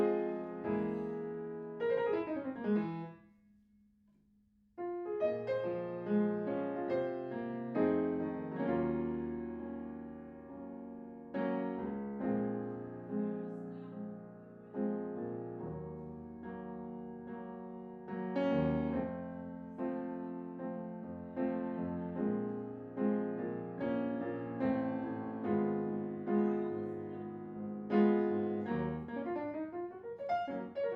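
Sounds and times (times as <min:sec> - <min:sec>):
piano in a room: 0:00.0 - 0:03.7, 0:04.7 - 0:30.9.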